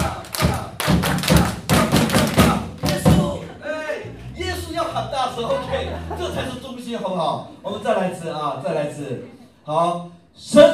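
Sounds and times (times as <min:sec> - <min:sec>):
hands clapping: 0:00.0 - 0:03.5
laughter: 0:03.2 - 0:09.7
speech: 0:06.2 - 0:10.7.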